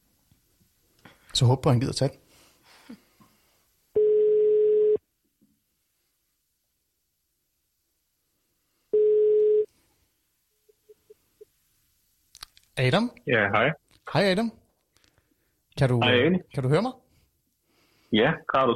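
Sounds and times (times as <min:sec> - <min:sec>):
speech: 0:01.4 - 0:02.2, 0:12.8 - 0:14.6, 0:15.8 - 0:17.0, 0:18.1 - 0:18.7
telephone ringing tone while calling: 0:04.0 - 0:05.0, 0:09.0 - 0:09.7.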